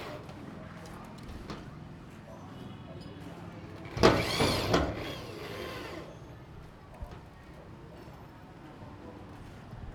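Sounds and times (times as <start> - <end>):
drills in Phnom Penh Cambodia: 4.0 - 6.1.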